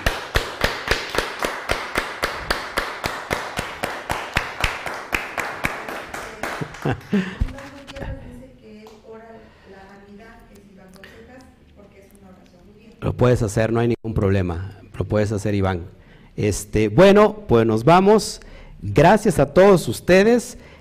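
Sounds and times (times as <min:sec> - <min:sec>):
audience applauding: 0:00.0 - 0:07.5
speech: 0:06.9 - 0:07.4, 0:13.2 - 0:20.7.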